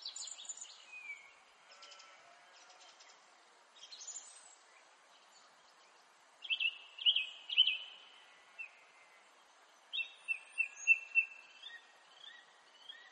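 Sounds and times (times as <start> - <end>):
pastoral nature ambience: 0.0 - 13.1.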